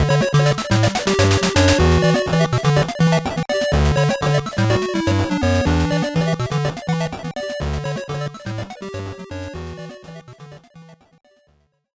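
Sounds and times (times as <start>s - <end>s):
WonderSwan Color background game music: 0.0s - 7.0s.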